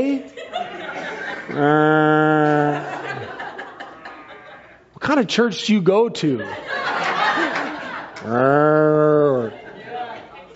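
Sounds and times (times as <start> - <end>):
speech: 0.0 - 0.4, 1.5 - 2.2, 5.2 - 6.8, 8.2 - 9.0
laughter: 0.2 - 4.8, 6.2 - 10.5
person imitating a cow mooing: 1.6 - 2.8, 8.2 - 9.5.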